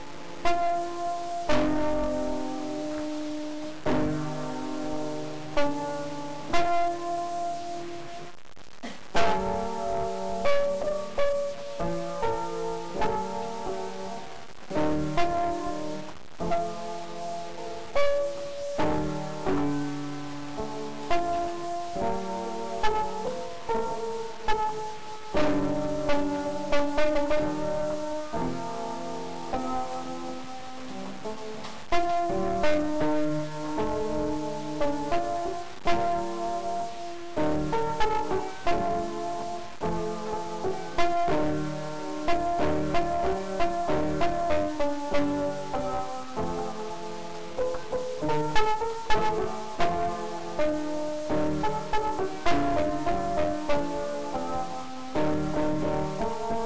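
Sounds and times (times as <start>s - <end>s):
music: 0.0s - 56.6s.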